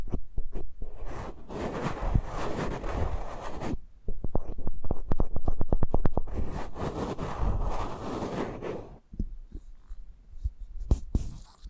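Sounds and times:
eardrum massage rubbing pressed against the microphone: 0:00.0 - 0:11.6.

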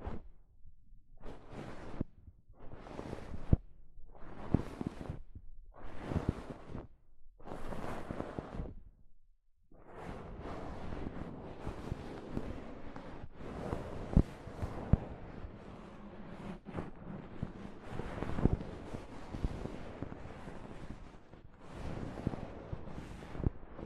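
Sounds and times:
soft fabric brushing a microphone: 0:00.0 - 0:00.4, 0:01.1 - 0:09.0, 0:09.8 - 0:23.8.

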